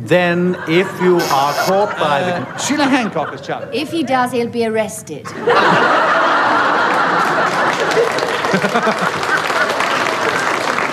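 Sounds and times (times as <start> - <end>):
speech: 0.0 - 6.4, 7.8 - 9.5
audience laughter: 0.5 - 4.3, 5.3 - 10.9
audience applause: 5.5 - 10.9.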